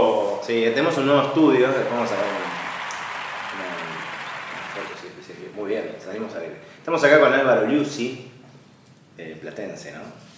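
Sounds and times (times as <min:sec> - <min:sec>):
speech: 0:00.5 - 0:02.5, 0:05.3 - 0:08.3, 0:09.2 - 0:10.3
applause sound effect played in a studio: 0:01.7 - 0:05.2.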